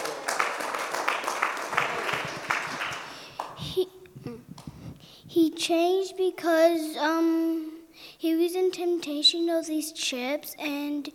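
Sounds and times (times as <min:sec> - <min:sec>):
audience applause: 0:00.0 - 0:03.7
speech: 0:05.4 - 0:11.1.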